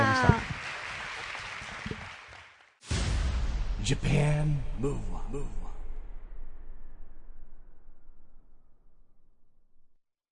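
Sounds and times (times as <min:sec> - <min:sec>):
crowd applauding: 0:00.0 - 0:02.8
speech: 0:03.9 - 0:05.6.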